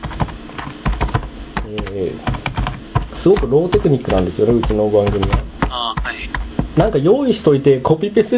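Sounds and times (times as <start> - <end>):
computer keyboard typing to post on Twitter: 0.0 - 6.7
speech: 1.7 - 2.3, 3.2 - 5.4, 6.0 - 8.3.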